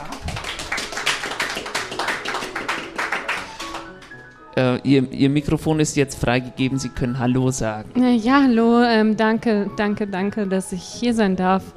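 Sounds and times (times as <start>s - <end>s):
applause: 0.0s - 4.3s
speech: 4.6s - 11.7s.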